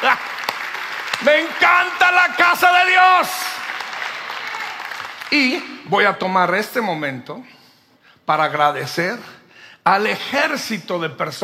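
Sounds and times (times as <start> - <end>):
audience applause: 0.0 - 5.7
speech: 1.2 - 3.5, 5.3 - 7.6, 8.3 - 11.4.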